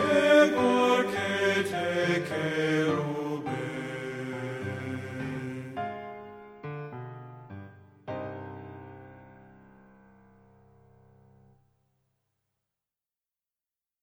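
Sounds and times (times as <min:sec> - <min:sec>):
tenor singing: 0:00.0 - 0:06.4.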